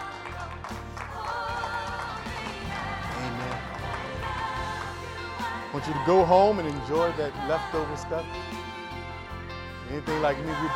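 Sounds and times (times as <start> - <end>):
audience clapping: 0.0 - 7.2
speech: 5.8 - 8.6, 9.9 - 10.7.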